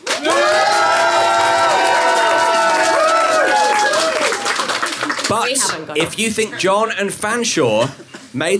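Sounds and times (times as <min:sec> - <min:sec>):
live audience applauding at a show: 0:00.0 - 0:06.1
live audience whooping and shouting: 0:00.2 - 0:04.5
speech: 0:05.5 - 0:08.5.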